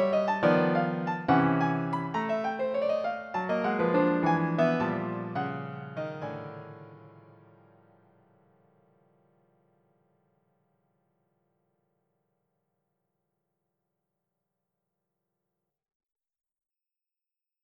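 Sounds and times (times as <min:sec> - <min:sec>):
piano: 0:00.0 - 0:10.6.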